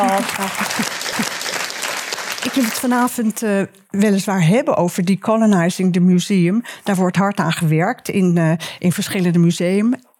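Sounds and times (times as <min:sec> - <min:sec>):
speech: 0:00.0 - 0:01.0, 0:02.6 - 0:10.1
audience applause: 0:00.0 - 0:03.2.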